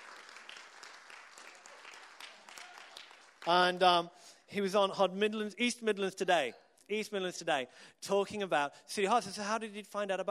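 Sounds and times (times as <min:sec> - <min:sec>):
audience applause: 0:00.0 - 0:03.7
speech: 0:03.4 - 0:10.2.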